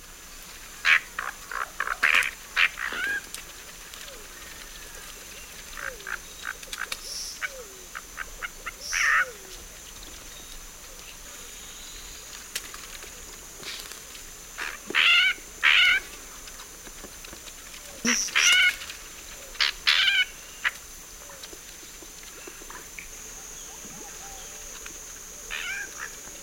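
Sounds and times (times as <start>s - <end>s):
Sand-colored Nightjar calling in the South American Eastern Lowlands: 0.8s - 3.3s, 4.1s - 9.5s, 14.6s - 16.1s, 18.0s - 20.8s, 25.5s - 26.4s.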